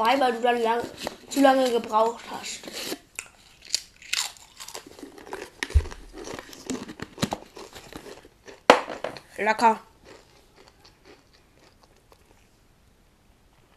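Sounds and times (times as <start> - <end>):
speech: 0.0 - 2.9, 9.4 - 9.9
crunching potato chips: 0.8 - 8.7, 10.0 - 12.5.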